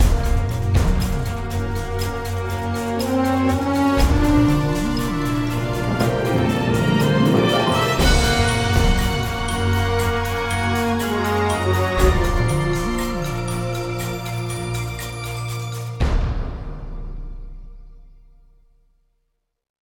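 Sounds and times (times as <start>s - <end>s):
epic intro music: 0.0s - 18.5s.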